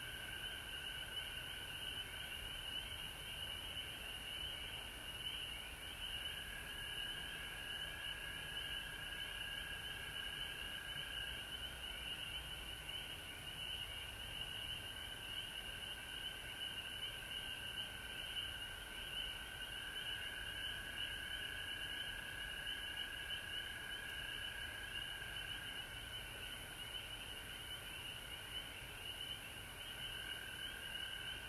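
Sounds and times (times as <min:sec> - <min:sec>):
frog chorus trilling: 0:00.3 - 0:31.4.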